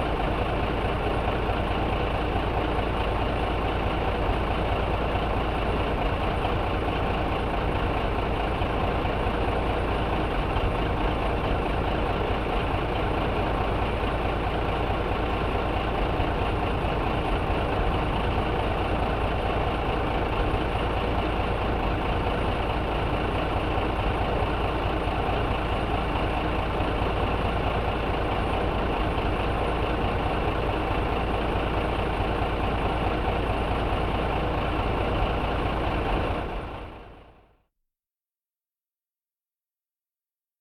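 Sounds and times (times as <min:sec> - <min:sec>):
stationary tractor engine running: 0:00.0 - 0:37.5.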